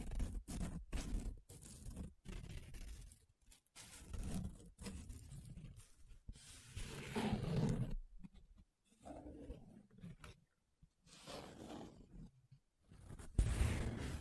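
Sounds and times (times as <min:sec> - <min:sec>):
paper being rubbed, scratched and traced: 0:00.0 - 0:08.0, 0:12.9 - 0:14.2.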